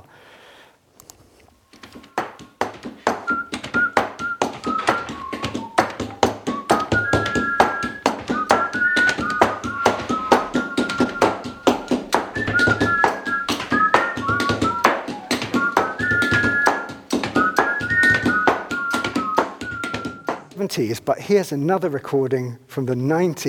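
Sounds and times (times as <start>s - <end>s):
postal workers rhythmically stamping and cancelling mail: 1.7s - 20.6s
whistled melody: 1.7s - 20.6s
speech: 20.8s - 23.4s.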